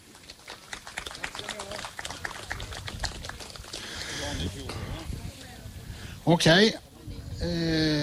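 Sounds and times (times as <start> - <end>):
audience applause: 0.0 - 4.4
speech: 6.3 - 6.8, 7.4 - 7.9.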